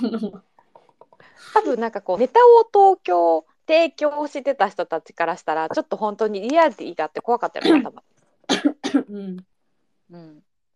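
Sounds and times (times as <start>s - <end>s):
speech: 0.0s - 0.5s, 1.4s - 9.5s, 10.1s - 10.5s
person coughing after tea went down the wrong way: 7.6s - 7.9s, 8.5s - 9.2s.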